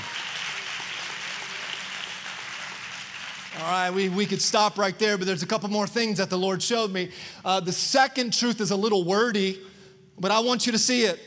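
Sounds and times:
audience clapping: 0.0 - 4.8
speech: 3.6 - 11.2.

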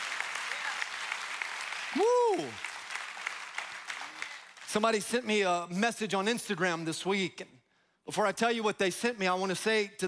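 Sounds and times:
audience clapping: 0.0 - 5.5
speech: 2.0 - 2.7, 4.7 - 10.0.

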